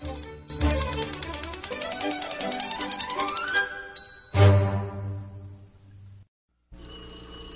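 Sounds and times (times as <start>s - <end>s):
bright music: 0.0s - 5.6s
telephone bell ringing: 6.8s - 7.5s.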